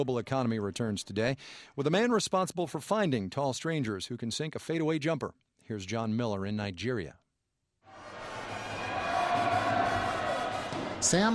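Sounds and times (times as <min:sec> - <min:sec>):
speech: 0:00.0 - 0:07.2, 0:11.0 - 0:11.3
crowd at a high school basketball tournament in Kano, Nigeria: 0:07.9 - 0:11.3.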